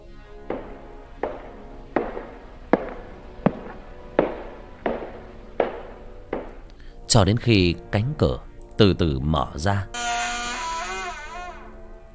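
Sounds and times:
footsteps outside: 0.5 - 6.7
speech: 7.1 - 10.2.

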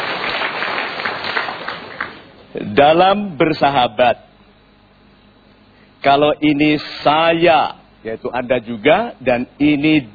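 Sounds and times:
studio audience applause on a motivational talk show: 0.0 - 2.3
speech: 2.7 - 4.3, 6.0 - 10.1.

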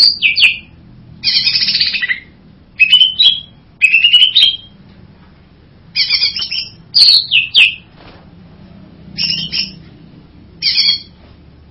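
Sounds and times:
harsh buzzy bird song: 0.0 - 4.8, 5.9 - 8.0, 9.0 - 11.2
low background hum: 0.0 - 11.6.

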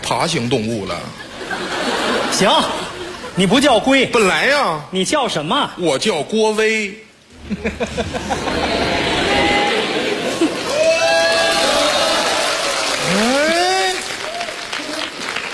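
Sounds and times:
speech: 0.1 - 1.7, 2.3 - 9.0
laughter: 1.2 - 3.5, 7.4 - 14.0
audience at a comic crosstalk performance calling out a name in unison: 7.8 - 15.2
applause: 9.1 - 15.5.

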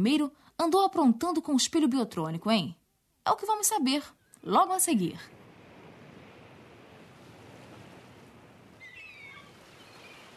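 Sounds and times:
speech: 0.0 - 5.4
ocean waves breaking on a beach with coconut palms: 5.0 - 10.3
faint high gull cries: 8.8 - 10.3.

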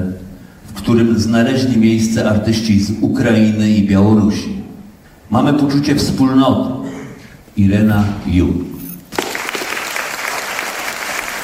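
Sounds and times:
speech: 0.9 - 4.6, 5.3 - 6.9, 7.6 - 8.7
theatre audience applause on International Theatre Day: 9.2 - 11.4.

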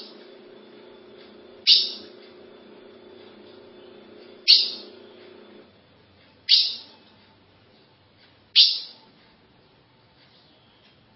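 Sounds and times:
low hum: 0.0 - 6.3
ultramarine grosbeak call notes: 1.5 - 2.2, 3.5 - 5.2, 6.4 - 7.1, 8.6 - 9.0, 10.8 - 11.1.

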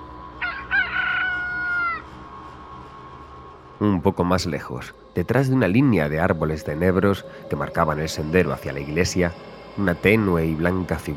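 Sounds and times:
rooster crowing: 0.4 - 2.1
speech: 3.8 - 11.1.

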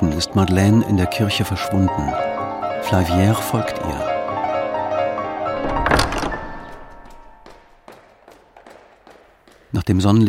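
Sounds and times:
speech: 0.2 - 4.1, 9.9 - 10.2
heavy wooden church tower door opening: 3.4 - 7.9.

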